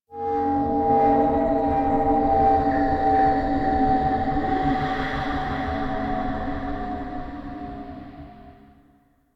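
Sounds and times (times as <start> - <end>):
asteroid howls ambience: 0.1 - 8.8.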